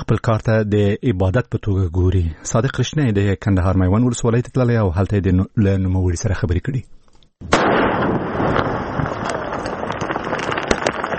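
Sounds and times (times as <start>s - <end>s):
speech: 0.1s - 8.2s
crackling rumble after landmine explosion: 7.4s - 11.1s
landmine explosion set off by police in Maiwand district, Kandahar: 7.4s - 11.1s.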